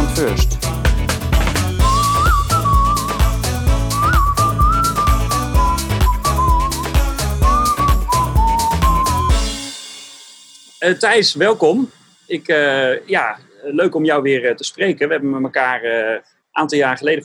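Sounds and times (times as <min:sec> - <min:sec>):
upbeat backing music with beat and bass: 0:00.0 - 0:12.0
speech: 0:00.2 - 0:00.7, 0:10.8 - 0:17.2
whistled melody: 0:01.8 - 0:09.8.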